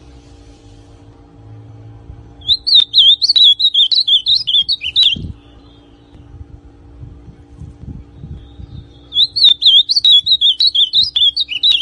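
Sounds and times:
ultramarine grosbeak song: 0:02.4 - 0:06.3, 0:08.1 - 0:11.7.

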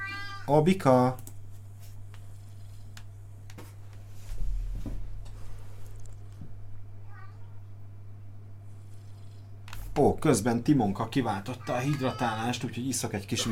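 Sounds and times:
cat meowing: 0:00.0 - 0:00.5, 0:07.0 - 0:07.5, 0:11.5 - 0:12.6
steady low electrical hum: 0:00.0 - 0:13.5
speech: 0:00.5 - 0:01.3, 0:10.0 - 0:13.5.

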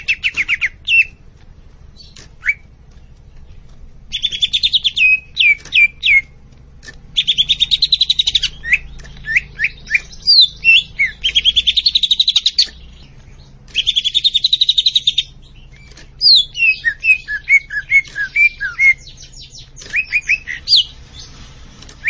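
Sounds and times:
leafbird song with whistled notes and buzzy chattering: 0:00.0 - 0:22.0.

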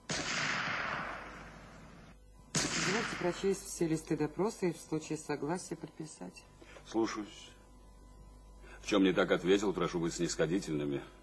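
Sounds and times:
cannon shot from the Peter and Paul Fortress: 0:00.0 - 0:03.7
speech: 0:03.0 - 0:07.6, 0:08.8 - 0:11.2.

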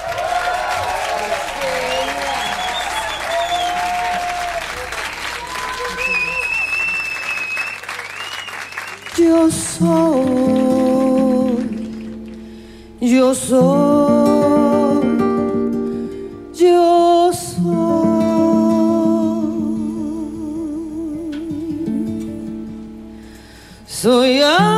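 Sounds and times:
audience applause greeting a guest singer at a live music event: 0:00.0 - 0:12.5
music at a live music event: 0:09.2 - 0:24.7
speech: 0:13.5 - 0:14.0.

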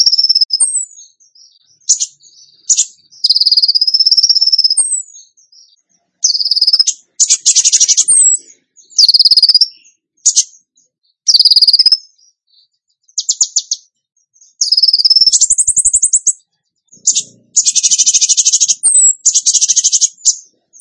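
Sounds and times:
bird song whistles and rattles: 0:00.0 - 0:20.7.

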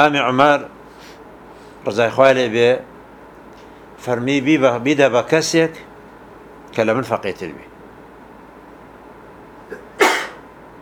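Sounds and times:
speech: 0:00.0 - 0:00.8, 0:01.8 - 0:02.9, 0:04.0 - 0:05.9, 0:06.7 - 0:07.7
low hum: 0:00.0 - 0:10.8
sneeze during an Islamic religious lesson: 0:09.7 - 0:10.4.

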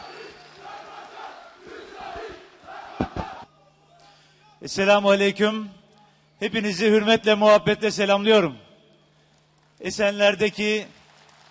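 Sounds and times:
audience applause: 0:00.0 - 0:01.6, 0:11.0 - 0:11.4
speech: 0:04.6 - 0:05.8, 0:06.4 - 0:08.6, 0:09.8 - 0:11.0.

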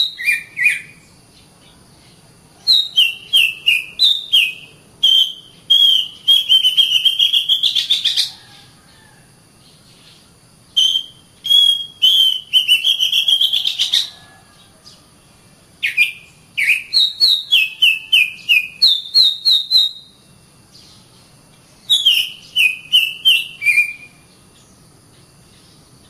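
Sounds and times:
Oriental magpie-robin song: 0:00.0 - 0:01.2, 0:02.7 - 0:08.3, 0:10.8 - 0:14.1, 0:15.8 - 0:20.2, 0:21.8 - 0:24.8.

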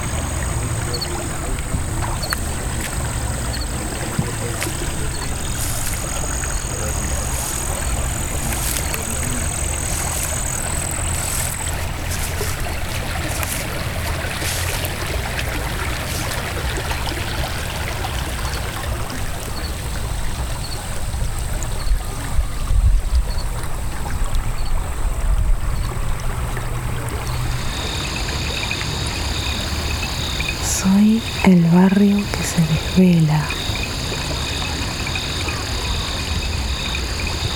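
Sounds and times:
waterfall: 0:00.0 - 0:37.5.

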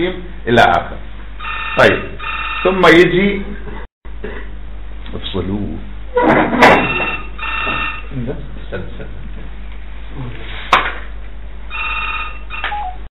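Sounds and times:
speech: 0:00.0 - 0:01.1, 0:01.8 - 0:04.4, 0:05.4 - 0:07.0, 0:08.1 - 0:11.0
telephone ringing during a lecture for imams in Tanta: 0:01.4 - 0:03.0, 0:06.8 - 0:08.1, 0:11.7 - 0:13.0.

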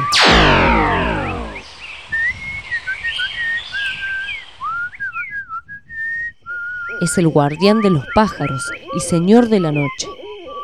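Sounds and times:
low harmonic drone: 0:00.0 - 0:01.8
eerie bird-like whistling of the Pombero: 0:00.0 - 0:10.6
speech: 0:07.0 - 0:10.2.

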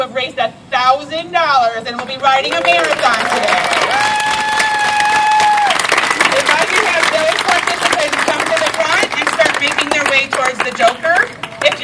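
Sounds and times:
speech: 0:00.0 - 0:04.1
crowd cheering: 0:02.2 - 0:10.1
crowd applause: 0:02.5 - 0:10.7.

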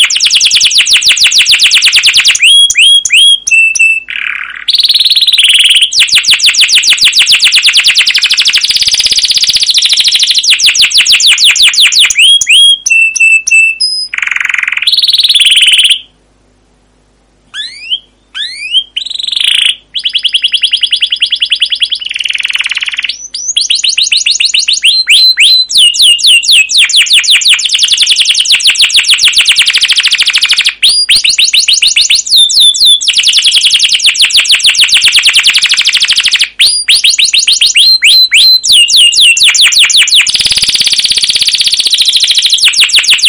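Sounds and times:
canary song: 0:00.0 - 0:16.6, 0:17.2 - 0:43.2.

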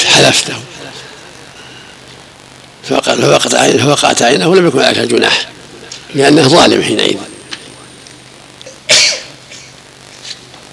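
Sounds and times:
old cassette tape hiss: 0:00.0 - 0:10.7
speech: 0:00.2 - 0:01.0, 0:02.9 - 0:07.3
person sneezing during a spoken Arabic religious lecture: 0:08.9 - 0:09.7.

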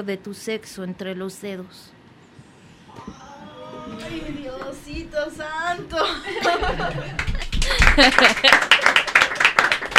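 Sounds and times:
speech: 0:00.0 - 0:02.0, 0:03.9 - 0:07.2, 0:08.0 - 0:08.8
laughter: 0:06.0 - 0:09.2
person clapping hands: 0:06.9 - 0:09.9.

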